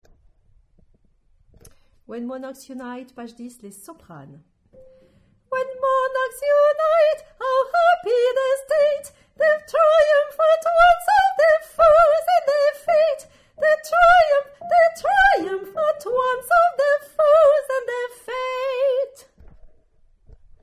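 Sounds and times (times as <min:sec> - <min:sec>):
soprano singing: 0:05.5 - 0:19.4.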